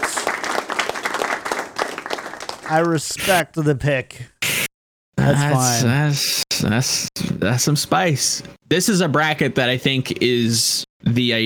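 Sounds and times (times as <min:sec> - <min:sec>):
hand clapping: 0:00.0 - 0:03.0
speech: 0:02.7 - 0:04.3, 0:05.3 - 0:11.4.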